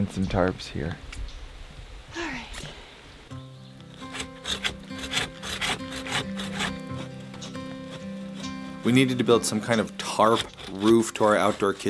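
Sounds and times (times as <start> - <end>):
speech: 0.0 - 1.2, 8.8 - 11.8
handsaw cutting small pine tree: 3.9 - 11.8.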